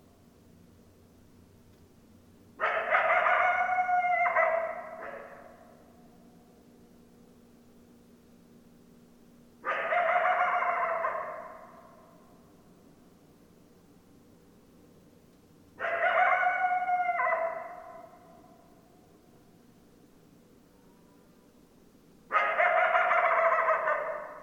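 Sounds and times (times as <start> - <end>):
background hiss: 0.0 - 3.5, 4.4 - 9.9, 11.0 - 16.0, 17.4 - 23.0
coyote howling: 2.6 - 5.8, 9.6 - 12.1, 15.8 - 18.6, 22.3 - 24.4.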